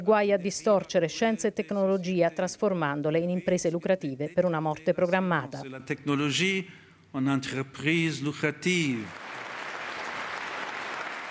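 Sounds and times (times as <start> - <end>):
speech: 0.0 - 9.2
audience applause: 9.1 - 11.3.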